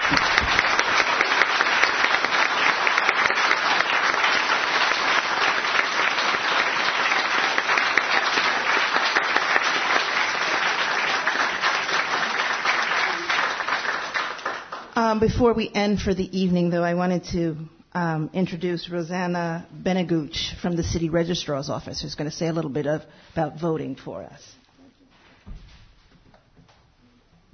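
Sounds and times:
round of applause: 0:00.0 - 0:15.2
speech: 0:15.2 - 0:24.6.

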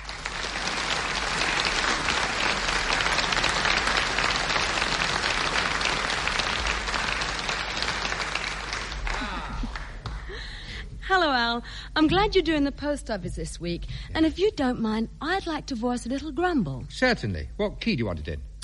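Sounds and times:
audience applause welcoming a singer: 0:00.0 - 0:10.5
speech: 0:11.2 - 0:18.5.

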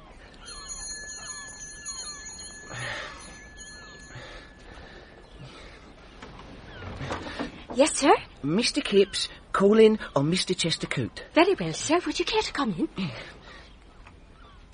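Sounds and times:
doorbell ringing: 0:00.4 - 0:05.0
speech: 0:07.8 - 0:13.4.

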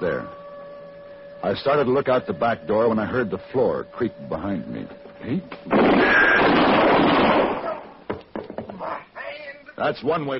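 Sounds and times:
speech: 0:00.0 - 0:00.4, 0:01.4 - 0:07.6, 0:09.8 - 0:10.3
gunshot: 0:05.7 - 0:08.0.

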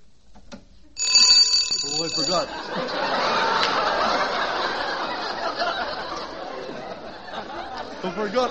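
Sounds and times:
doorbell ringing with a loud shrill metallic jangle: 0:01.0 - 0:02.6
speech: 0:02.1 - 0:03.8, 0:08.1 - 0:08.4
laughter: 0:02.3 - 0:08.4.

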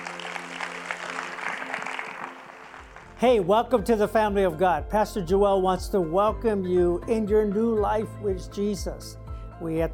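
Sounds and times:
church congregation applauding as a pastor is sent off: 0:00.0 - 0:03.2
speech: 0:03.2 - 0:09.9.

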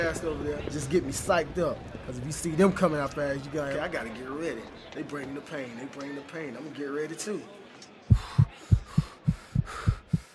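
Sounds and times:
speech: 0:00.0 - 0:08.2
fast heartbeat: 0:08.1 - 0:10.3.

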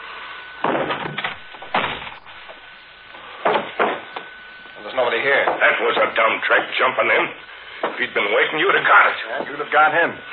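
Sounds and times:
door being kicked open: 0:00.6 - 0:02.2, 0:03.4 - 0:04.1
speech: 0:05.2 - 0:10.3.

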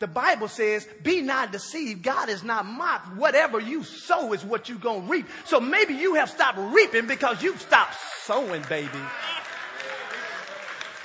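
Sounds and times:
speech: 0:00.0 - 0:09.5
laughter: 0:05.4 - 0:10.9
audience clapping: 0:06.8 - 0:11.0.

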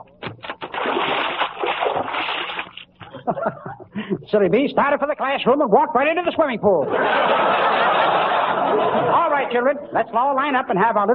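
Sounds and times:
bucket of water tipping and splashing: 0:00.0 - 0:03.2
laughter: 0:03.1 - 0:04.0, 0:06.8 - 0:09.6
speech: 0:04.3 - 0:07.8, 0:08.8 - 0:11.1.

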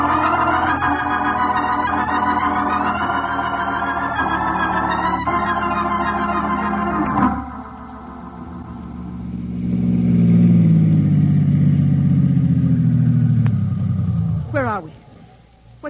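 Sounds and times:
car engine humming while driven through bad weather to Lone Lake: 0:00.0 - 0:15.8.

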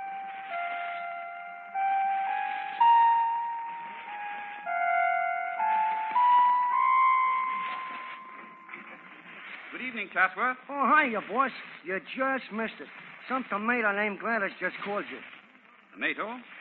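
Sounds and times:
musical door chimes: 0:00.0 - 0:09.5
speech: 0:10.0 - 0:15.3, 0:16.0 - 0:16.6.

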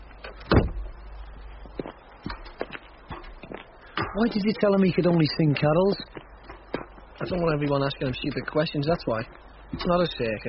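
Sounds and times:
door being shut: 0:00.4 - 0:00.9
speech: 0:04.2 - 0:06.2, 0:07.2 - 0:10.4.

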